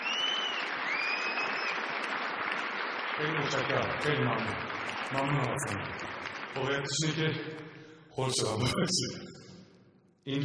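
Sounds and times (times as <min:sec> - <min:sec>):
high whistles: 0:00.0 - 0:01.9
audience clapping after a performance at an award ceremony: 0:00.0 - 0:07.2
speech: 0:03.2 - 0:09.4, 0:10.3 - 0:10.4.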